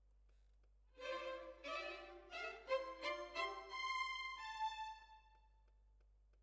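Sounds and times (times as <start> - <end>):
violins: 1.0 - 5.5.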